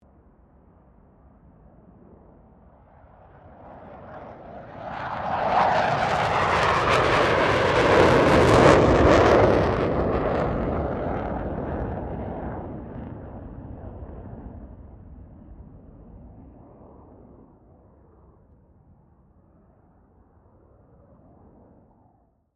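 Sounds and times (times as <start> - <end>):
FA-18 Hornet aircraft passing: 1.5 - 18.5.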